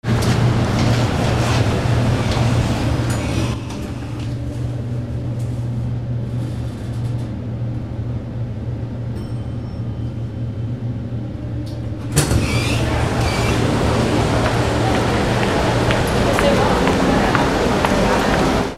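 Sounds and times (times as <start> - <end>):
ambience: 0.1 - 18.7.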